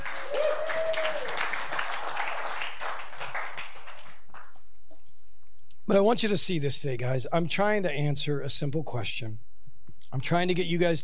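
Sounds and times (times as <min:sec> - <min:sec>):
audience clapping: 0:00.0 - 0:04.7
speech: 0:05.9 - 0:09.5, 0:10.1 - 0:11.0.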